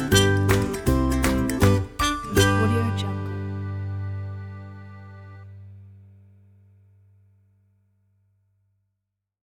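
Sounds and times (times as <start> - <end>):
happy clapping: 0.0 - 2.5
happy ukulele: 0.0 - 5.6.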